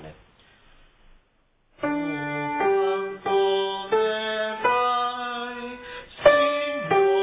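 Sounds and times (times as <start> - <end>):
sopranos singing: 1.9 - 7.2.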